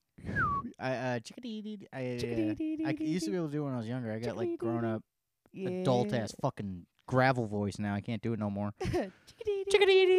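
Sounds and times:
person whistling a chickadee call imitation: 0.2 - 0.7
speech: 0.8 - 10.1.

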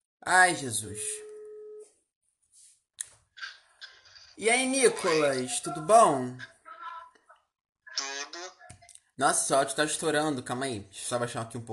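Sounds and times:
speech: 0.2 - 1.2, 4.4 - 6.5, 9.2 - 11.7
telephone ringback tone while a call connects: 1.0 - 1.9.

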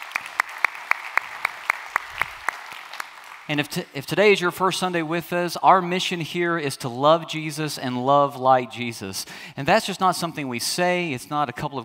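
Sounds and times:
church congregation clapping at a Sunday service: 0.0 - 3.8
speech: 3.5 - 11.8.

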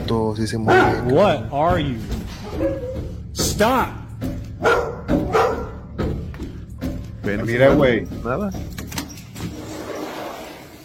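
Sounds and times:
speech: 0.1 - 4.8, 7.2 - 8.7
dog barking in a played video: 0.6 - 1.4, 4.6 - 5.9.

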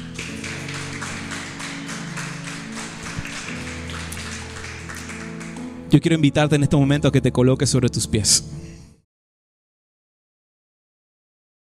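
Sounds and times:
audience applauding: 0.0 - 5.8
speech: 5.9 - 8.7.

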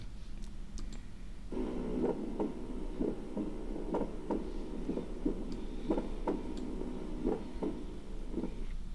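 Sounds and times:
low hum: 0.0 - 8.9
recorded heartbeat with split first heart sound: 1.5 - 8.8.

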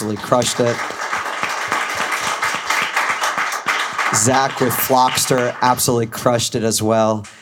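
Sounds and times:
speech: 0.0 - 1.0, 4.1 - 7.4
audience applause: 0.0 - 5.9.

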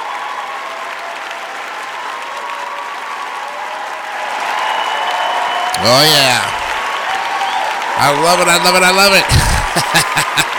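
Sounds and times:
audience applause: 0.0 - 10.5
speech: 5.8 - 6.6, 8.0 - 10.5
laughter: 8.9 - 10.5.

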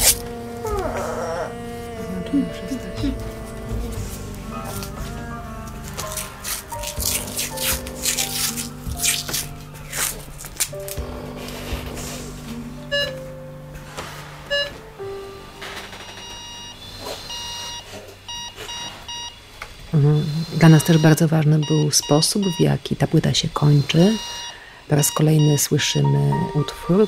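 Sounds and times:
layered musical piece with sustained tones: 0.0 - 16.0
speech: 2.3 - 3.3, 20.7 - 27.0
electronic beeps like a pulse oximeter's: 12.9 - 13.2, 14.5 - 14.8, 15.9 - 19.4, 20.8 - 22.7, 23.8 - 27.0.

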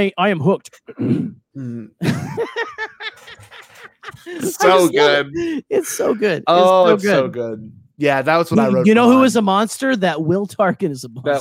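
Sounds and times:
speech: 0.0 - 11.3
voice imitating a character's throat clearing: 0.8 - 2.0
laughter: 2.0 - 7.3
growly voiced sounds: 4.3 - 7.7.

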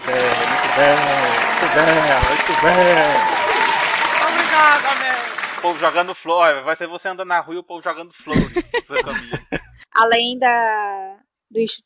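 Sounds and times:
laughter: 0.0 - 4.5, 5.6 - 6.2, 8.3 - 9.9
applause: 0.0 - 6.2
speech: 0.8 - 3.4, 4.6 - 11.8.

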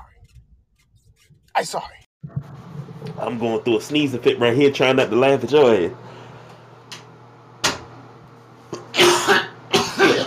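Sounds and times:
speech: 1.6 - 2.0, 3.2 - 6.2
person clearing throat: 8.7 - 10.2
person coughing: 8.7 - 10.2.

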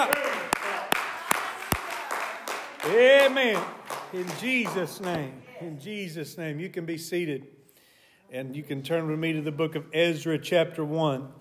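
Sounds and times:
audience clapping hands: 0.0 - 5.4
speech: 2.8 - 7.6, 8.3 - 11.3.

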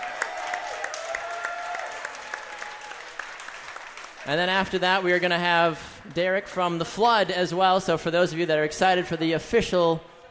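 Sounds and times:
audience applause: 0.0 - 5.3
speech: 4.2 - 10.2.

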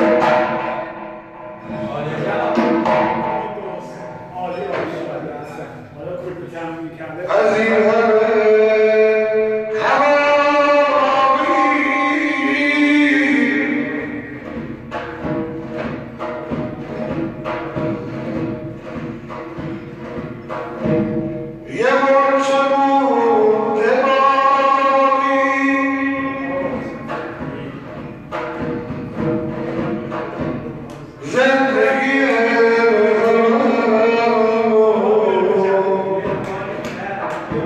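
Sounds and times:
zurkhaneh drum strokes: 0.0 - 37.6
man chanting in a zurkhaneh session: 1.7 - 14.4, 21.6 - 28.0, 31.0 - 37.6.

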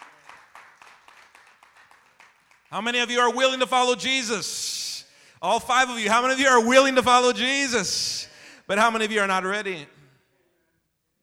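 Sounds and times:
audience clapping hands in a steady rhythm: 0.0 - 3.0
speech: 2.7 - 4.8, 5.4 - 8.1, 8.7 - 10.0.

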